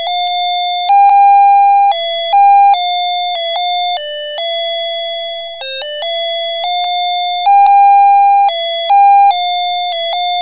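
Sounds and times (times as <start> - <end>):
melody: 0.2 - 4.3, 6.7 - 10.2.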